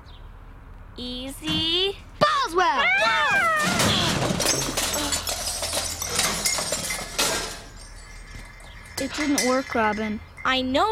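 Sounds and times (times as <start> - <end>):
speech: 1.0 - 2.8, 9.1 - 10.8
person falling into a garbage can: 3.1 - 6.6.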